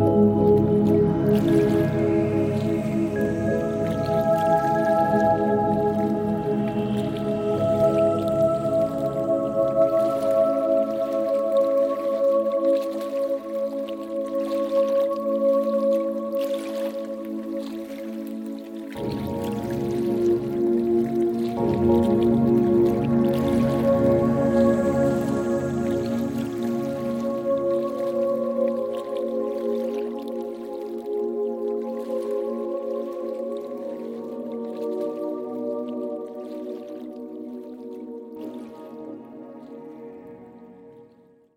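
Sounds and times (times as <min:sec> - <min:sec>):
nature sounds: 0:00.0 - 0:41.5.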